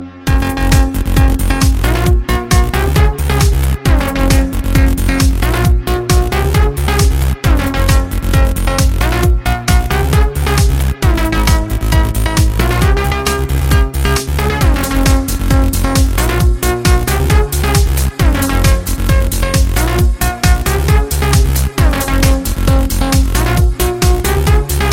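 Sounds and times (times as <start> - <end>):
electronic music ringtone: 0.2 - 24.9.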